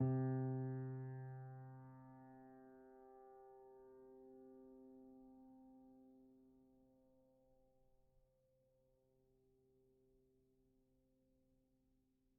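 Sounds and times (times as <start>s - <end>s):
Kawai grand piano sustained C2 note: 0.0s - 1.8s.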